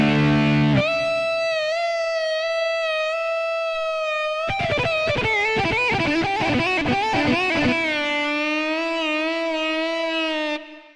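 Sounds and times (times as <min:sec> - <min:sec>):
keyboard power lead guitar voice: 0:00.0 - 0:10.9.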